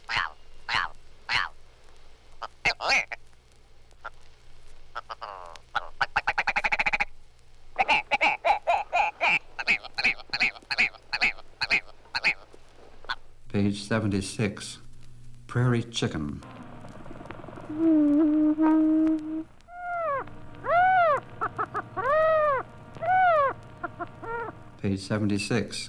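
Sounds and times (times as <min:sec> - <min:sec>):
Willow Ptarmigan croaking, rattling and clucking: 0:00.0 - 0:01.6, 0:02.4 - 0:03.2, 0:04.9 - 0:07.1, 0:07.8 - 0:13.3, 0:17.2 - 0:24.8
speech: 0:13.8 - 0:14.8, 0:15.6 - 0:16.5, 0:17.7 - 0:19.5, 0:24.8 - 0:25.8.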